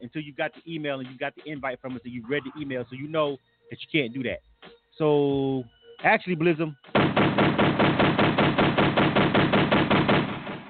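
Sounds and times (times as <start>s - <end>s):
speech: 0.1s - 7.5s
machine-gun gunfire sound effect: 6.9s - 10.6s.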